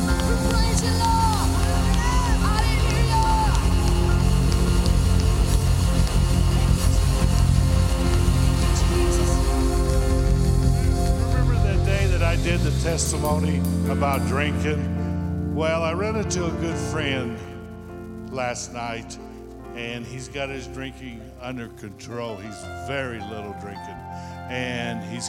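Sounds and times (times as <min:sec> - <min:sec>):
audience roaring in praise: 0:00.0 - 0:12.4
speech: 0:12.8 - 0:15.0, 0:15.6 - 0:17.5, 0:18.3 - 0:25.2.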